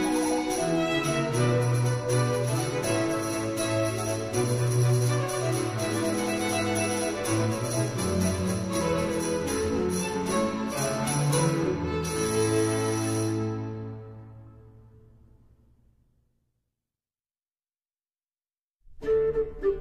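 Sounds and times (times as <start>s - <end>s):
cello solo: 0.0s - 14.2s.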